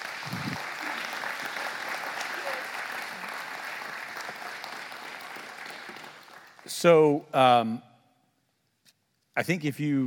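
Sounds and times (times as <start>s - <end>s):
audience applause: 0.0s - 6.9s
speech: 6.7s - 7.9s, 9.4s - 10.0s.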